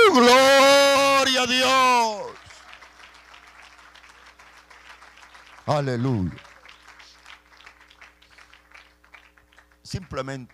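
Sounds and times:
low steady hum: 0.0s - 10.5s
audience applause: 1.0s - 10.5s
speech: 5.7s - 6.5s, 9.9s - 10.5s.

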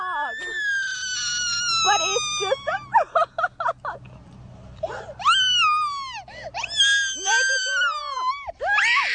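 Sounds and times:
child screaming in terror: 0.2s - 2.9s, 5.2s - 9.1s.

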